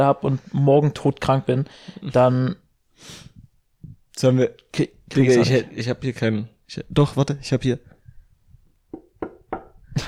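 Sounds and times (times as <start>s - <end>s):
speech: 0.0s - 3.3s, 4.2s - 7.9s
knocking on wood: 8.9s - 9.8s.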